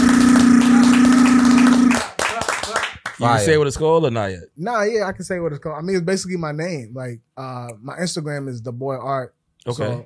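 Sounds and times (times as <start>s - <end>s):
clapping: 0.1s - 3.2s
speech: 3.2s - 10.0s.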